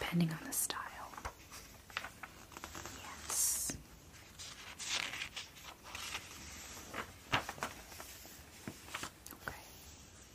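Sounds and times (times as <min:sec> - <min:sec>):
speech: 0:00.1 - 0:00.8
magazine pages flipping: 0:01.0 - 0:03.4, 0:03.9 - 0:09.5.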